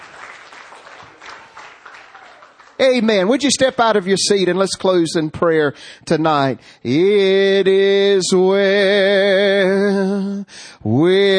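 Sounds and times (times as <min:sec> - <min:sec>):
congregation clapping during a church service: 0:00.0 - 0:04.0
speech: 0:02.8 - 0:11.3.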